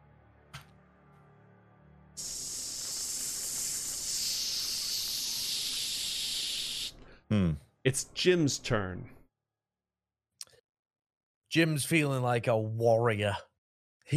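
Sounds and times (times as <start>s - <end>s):
hissing from HVAC units: 2.2s - 7.0s
speech: 7.3s - 9.2s, 11.6s - 13.5s.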